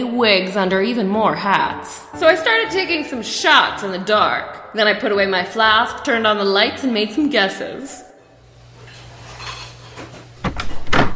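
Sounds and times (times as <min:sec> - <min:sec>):
speech: 0:00.0 - 0:08.1
kitchen clatter of utensils and pans: 0:08.9 - 0:10.3.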